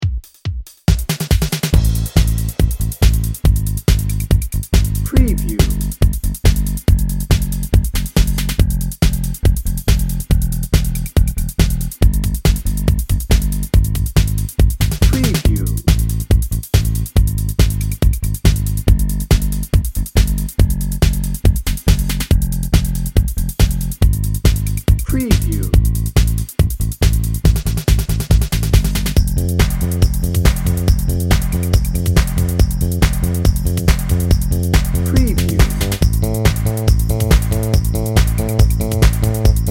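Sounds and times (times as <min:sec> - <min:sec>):
drum and bass music: 0:00.0 - 0:39.6.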